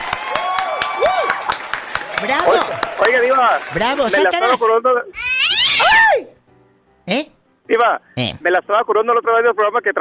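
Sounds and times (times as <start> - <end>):
applause sound effect: 0.0 - 4.6
speech: 2.2 - 5.2, 7.1 - 9.9.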